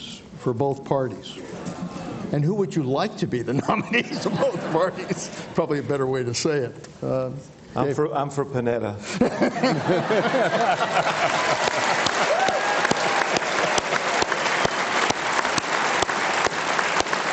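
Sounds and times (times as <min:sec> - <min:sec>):
speech: 0:00.4 - 0:01.6, 0:02.3 - 0:11.7
laughter: 0:03.5 - 0:05.9, 0:09.0 - 0:14.3
audience applause: 0:10.1 - 0:17.3.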